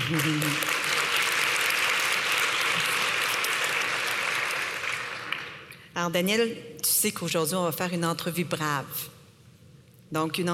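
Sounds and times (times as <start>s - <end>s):
audience applause: 0.0s - 5.7s
speech: 0.1s - 0.7s, 6.0s - 9.2s, 10.1s - 10.5s.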